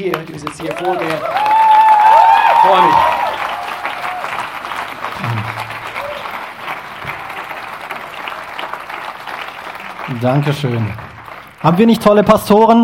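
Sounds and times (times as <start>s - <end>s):
speech: 0.0s - 1.6s, 2.6s - 3.2s, 10.1s - 11.0s, 11.6s - 12.8s
audience applause: 0.0s - 12.6s
faint crowd murmur: 3.5s - 10.1s.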